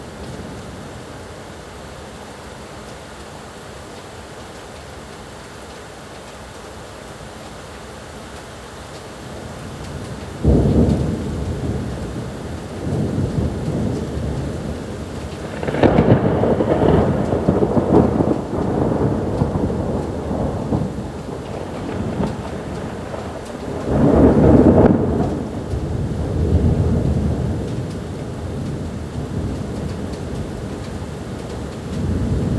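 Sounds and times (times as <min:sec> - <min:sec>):
thunder: 0:10.3 - 0:32.5.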